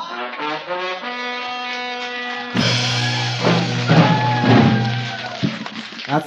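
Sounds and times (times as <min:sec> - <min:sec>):
live concert bass music: 0:00.1 - 0:06.2.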